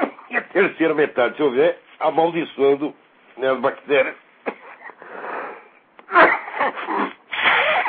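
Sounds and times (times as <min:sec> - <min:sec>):
speech: 0:00.6 - 0:04.2
sneeze: 0:06.1 - 0:07.8.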